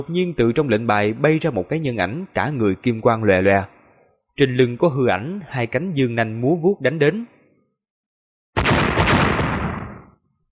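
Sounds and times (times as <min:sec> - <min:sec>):
speech: 0:00.0 - 0:03.8, 0:04.4 - 0:07.3
explosion sound effects: 0:08.6 - 0:10.2.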